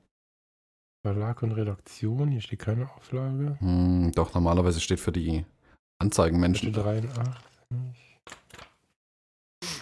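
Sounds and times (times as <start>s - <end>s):
speech: 1.0s - 8.4s
leafing through magazine pages: 6.6s - 7.6s, 8.3s - 8.8s.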